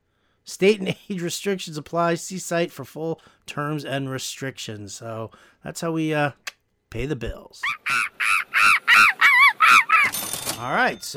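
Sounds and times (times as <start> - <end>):
speech: 0.5 - 8.0, 10.6 - 11.1
monkey screaming: 7.6 - 10.3.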